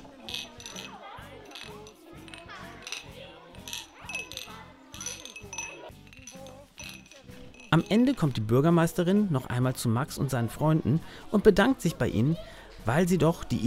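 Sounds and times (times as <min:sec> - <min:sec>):
glasses clinking in a toast: 0:00.0 - 0:08.6
busy murmur of voices: 0:00.0 - 0:13.6
speech: 0:07.7 - 0:13.6.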